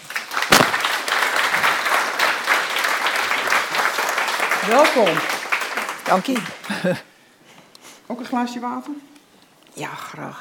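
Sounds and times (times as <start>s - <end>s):
audience applause: 0.0s - 7.0s
speech: 4.7s - 5.3s, 6.1s - 7.1s, 8.1s - 9.1s, 9.8s - 10.3s.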